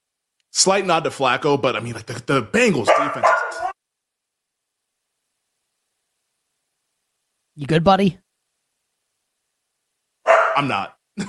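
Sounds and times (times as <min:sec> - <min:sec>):
speech: 0:00.6 - 0:03.7, 0:07.6 - 0:08.2, 0:10.6 - 0:11.2
dog barking: 0:02.8 - 0:03.8, 0:10.3 - 0:10.8.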